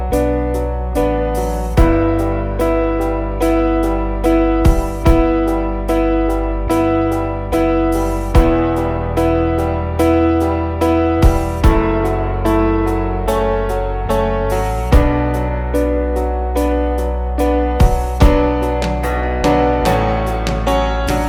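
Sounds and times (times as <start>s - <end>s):
sad sorrowful instrumental piano backing track: 0.0s - 21.2s.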